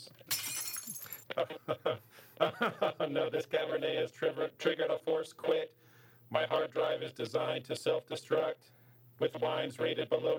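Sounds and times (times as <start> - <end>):
glass bottles knocked over and shattering: 0.3 - 1.3
laughter: 1.3 - 3.5
speech: 1.4 - 10.3.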